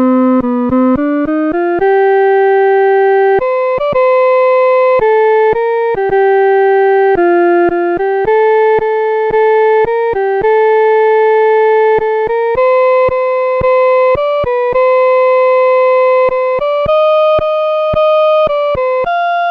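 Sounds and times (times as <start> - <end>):
solo hymn melody, first part: 0.0 - 19.5.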